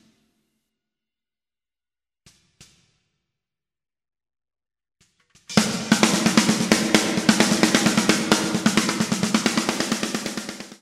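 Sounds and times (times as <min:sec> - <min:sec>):
heavily gated snare drum: 0:05.4 - 0:10.8.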